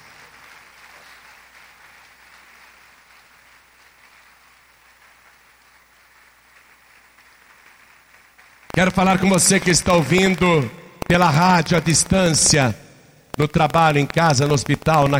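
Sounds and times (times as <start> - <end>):
church audience applause: 0.0 - 11.4
speech: 8.8 - 12.8, 13.4 - 15.1.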